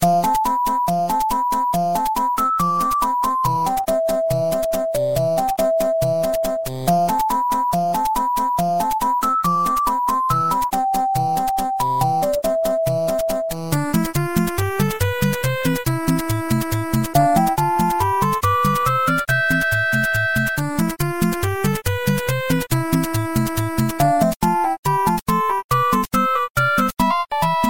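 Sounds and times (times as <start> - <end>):
8-bit music: 0.0 - 27.6.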